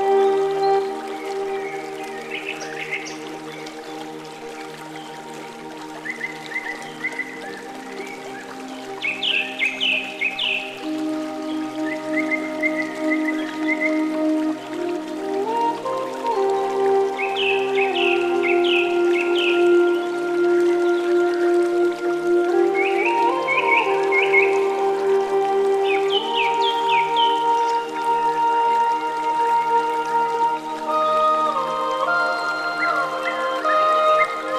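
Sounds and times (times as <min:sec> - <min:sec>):
relaxing forest ambience: 0:00.0 - 0:34.5.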